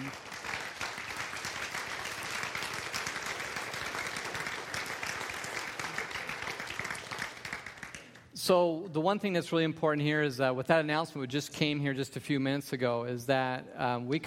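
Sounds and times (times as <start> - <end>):
audience applause: 0.0 - 8.3
speech: 8.5 - 14.2.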